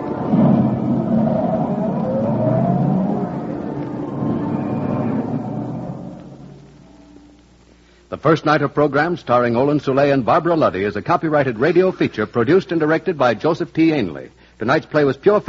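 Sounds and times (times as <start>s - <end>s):
taxi cab engine revving and pulling away: 0.1s - 6.9s
speech: 8.2s - 15.4s.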